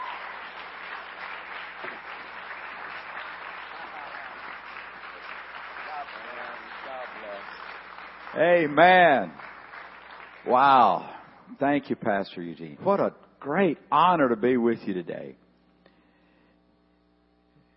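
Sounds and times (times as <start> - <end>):
large congregation applause for a pastor on a church stage: 0.0 - 11.4
speech: 8.4 - 9.4, 10.5 - 15.4.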